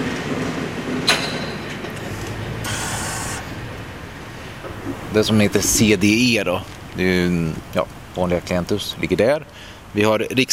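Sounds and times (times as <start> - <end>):
vehicle driving past a tractor: 0.0 - 10.0
hissing whoosh: 2.1 - 5.8
speech: 5.2 - 10.5.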